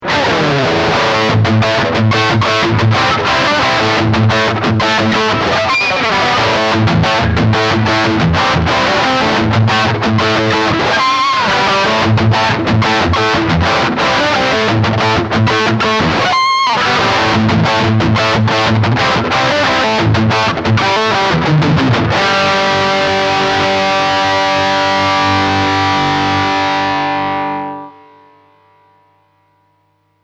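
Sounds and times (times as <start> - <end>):
lead melody: 0.5 - 28.6.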